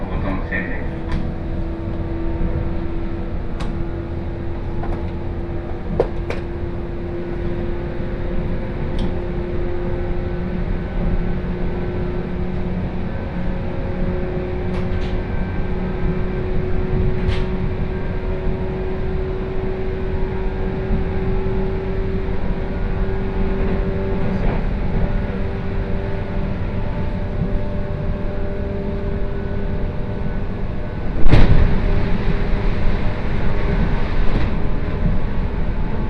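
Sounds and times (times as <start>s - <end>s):
moving train rumbling on the Kosei Line: 0.0s - 36.0s
sharp jolt or bang: 31.2s - 32.2s.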